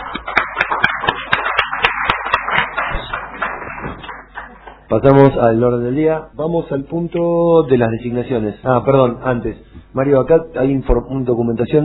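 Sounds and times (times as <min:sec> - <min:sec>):
applause: 0:00.0 - 0:04.9
speech: 0:04.9 - 0:11.8.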